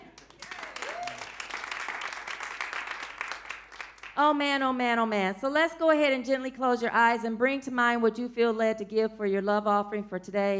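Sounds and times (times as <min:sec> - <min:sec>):
audience clapping: 0:00.0 - 0:04.2
speech: 0:04.2 - 0:10.5.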